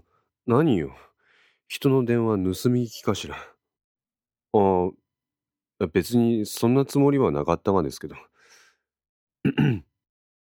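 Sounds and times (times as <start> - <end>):
speech: 0.5 - 1.1, 1.7 - 3.5, 4.5 - 5.0, 5.8 - 8.3, 9.4 - 9.9
throat clearing: 9.4 - 9.9.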